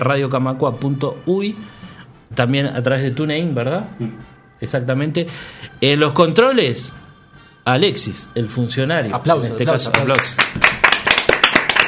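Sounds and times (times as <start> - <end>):
speech: 0.0 - 7.0, 7.7 - 10.7
people clapping in a radio studio: 9.8 - 11.8.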